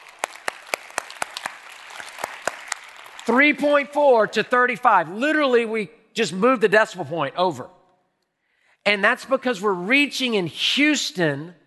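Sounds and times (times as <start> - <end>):
audience applause: 0.0 - 3.6
speech: 3.3 - 7.8, 8.8 - 11.6.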